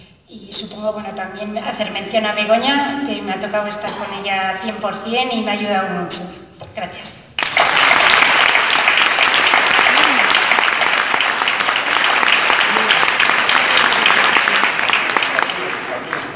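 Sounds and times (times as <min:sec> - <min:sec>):
speech: 0:00.4 - 0:07.2
audience applause: 0:07.4 - 0:16.3.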